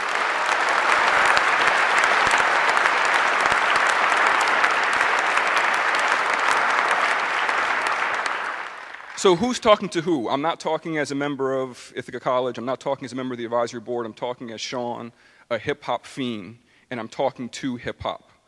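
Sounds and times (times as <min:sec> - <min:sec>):
audience applause: 0:00.0 - 0:09.9
speech: 0:09.2 - 0:18.3.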